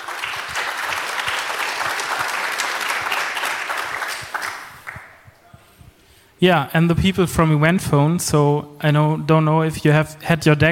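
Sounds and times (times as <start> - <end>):
sustained applause from a sizable crowd: 0.0 - 5.2
speech: 6.4 - 10.6.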